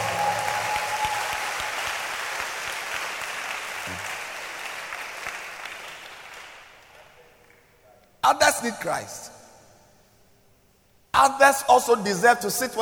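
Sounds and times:
audience clapping: 0:00.0 - 0:07.7
speech: 0:08.3 - 0:09.4, 0:11.2 - 0:12.8.

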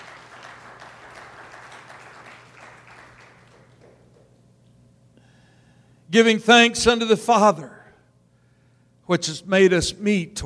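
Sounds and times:
audience clapping: 0:00.0 - 0:04.4
speech: 0:06.1 - 0:07.8, 0:09.1 - 0:10.4.

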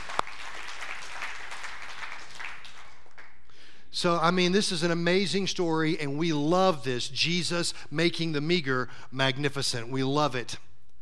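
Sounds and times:
audience applause: 0:00.0 - 0:03.4
speech: 0:04.0 - 0:10.7.

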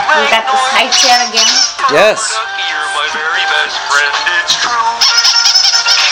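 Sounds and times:
speech: 0:00.1 - 0:06.0
rubber duck squeaking when squeezed: 0:00.8 - 0:01.8.

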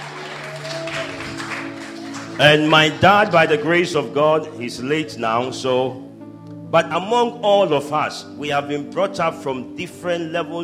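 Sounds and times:
audience clapping: 0:00.0 - 0:04.6
speech: 0:02.4 - 0:06.1, 0:06.7 - 0:10.6.

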